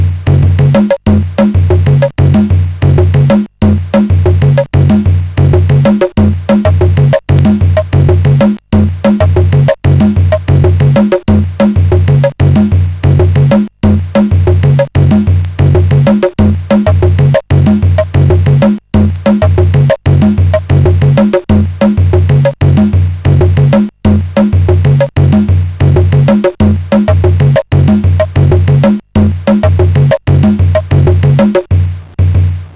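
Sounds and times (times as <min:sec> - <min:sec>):
rock tune on a CSG8580 SID chip: 0:00.0 - 0:32.5.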